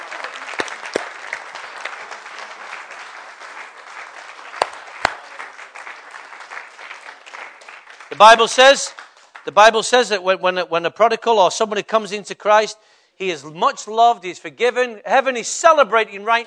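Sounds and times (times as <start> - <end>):
audience applauding: 0.0 - 9.9
speech: 8.2 - 16.4.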